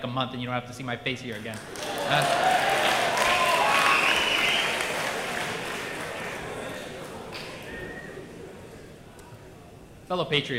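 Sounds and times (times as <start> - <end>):
speech: 0.0 - 2.8, 10.1 - 10.5
large audience clapping: 1.3 - 8.0
faint cheers: 1.7 - 6.6.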